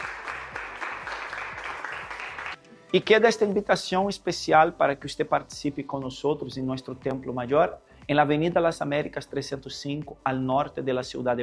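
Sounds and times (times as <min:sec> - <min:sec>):
audience applause: 0:00.0 - 0:02.6
speech: 0:02.9 - 0:11.4.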